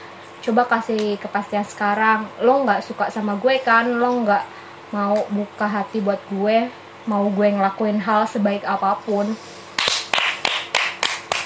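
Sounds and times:
speech: 0.4 - 9.6
hand clapping: 9.8 - 11.4.

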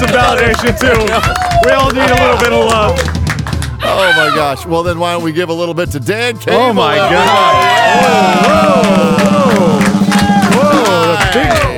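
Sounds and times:
crowd clapping and cheering: 0.0 - 4.4, 6.8 - 11.7
speech: 0.1 - 3.2, 3.9 - 9.7, 11.2 - 11.7.

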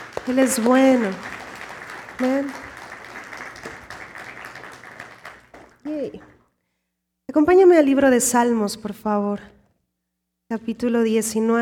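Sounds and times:
crowd audience applause: 0.0 - 6.4
speech: 0.2 - 1.4, 2.2 - 2.6, 5.9 - 6.3, 7.3 - 9.5, 10.5 - 11.6.

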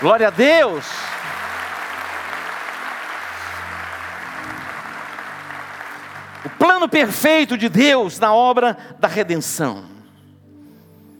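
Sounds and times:
speech: 0.0 - 1.1, 6.8 - 10.0
audience applause: 0.0 - 7.4.

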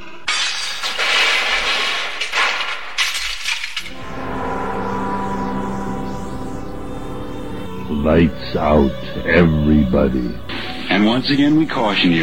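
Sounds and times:
mirror smashing: 0.3 - 3.9
low music: 3.9 - 12.2
speech: 8.0 - 12.2.

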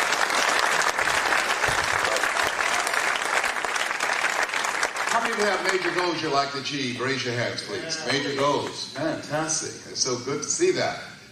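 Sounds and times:
audience applause: 0.0 - 6.3
speech: 5.4 - 11.1.

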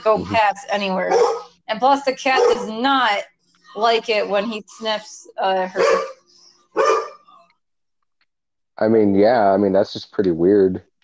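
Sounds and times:
speech: 0.0 - 6.2, 8.8 - 10.9
dog barking at a cat: 1.0 - 1.6, 2.2 - 2.8, 5.7 - 7.3.

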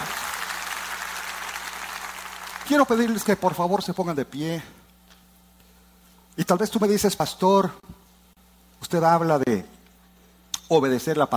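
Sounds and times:
audience applause: 0.0 - 3.5
speech: 2.7 - 4.8, 6.4 - 8.0, 8.9 - 9.7, 10.7 - 11.3.

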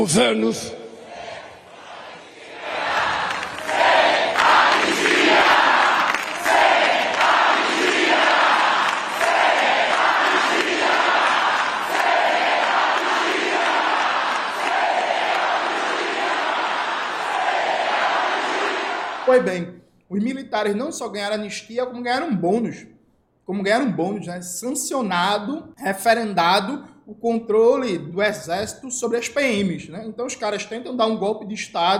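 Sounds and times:
speech: 0.0 - 0.8, 19.3 - 22.9, 23.5 - 31.9
crowd chanting: 0.8 - 19.3.

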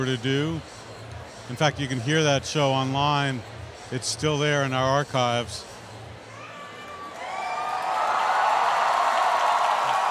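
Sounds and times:
speech: 0.0 - 0.8, 1.5 - 5.7
concert crowd cheering: 6.4 - 10.0.

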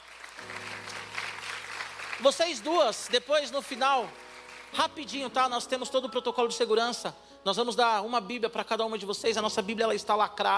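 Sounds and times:
audience applauding: 0.0 - 5.1
speech: 2.2 - 10.5.

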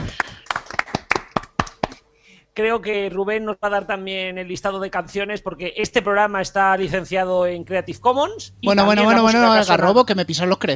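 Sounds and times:
sharp crisp claps: 0.0 - 2.1
speech: 2.6 - 10.7.

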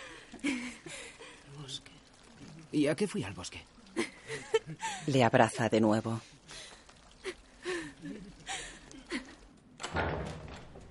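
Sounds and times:
speech: 2.7 - 3.8, 4.7 - 6.3
door creaking open in a fantasy drama scene: 9.8 - 10.8.

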